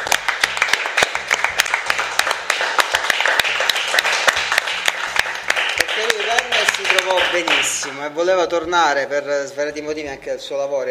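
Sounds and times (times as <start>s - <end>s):
applause: 0.0s - 8.0s
speech: 7.1s - 10.8s.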